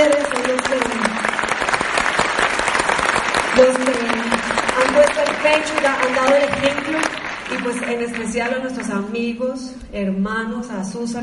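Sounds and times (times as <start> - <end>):
audience applause: 0.0 - 8.4
speech: 5.6 - 11.2.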